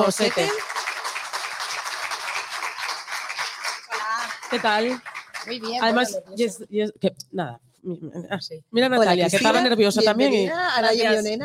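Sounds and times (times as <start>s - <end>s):
speech: 0.0s - 0.8s, 4.5s - 11.4s
audience applause: 0.0s - 6.1s.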